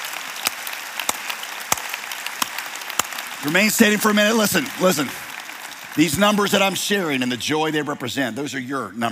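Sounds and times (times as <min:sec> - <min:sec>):
audience applauding volunteers: 0:00.0 - 0:07.8
speech: 0:03.4 - 0:05.2, 0:06.0 - 0:09.1.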